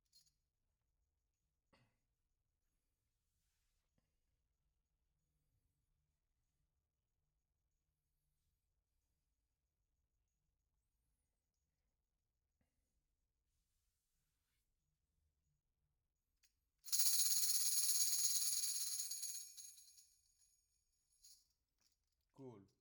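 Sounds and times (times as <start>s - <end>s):
tambourine: 16.8s - 22.0s.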